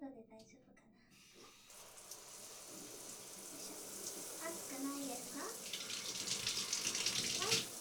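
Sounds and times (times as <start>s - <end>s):
binaural shower: 1.1s - 7.8s.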